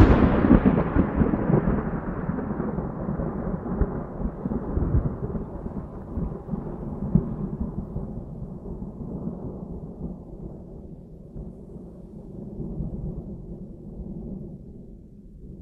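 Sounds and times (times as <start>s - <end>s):
thunder on an island: 0.0s - 15.6s.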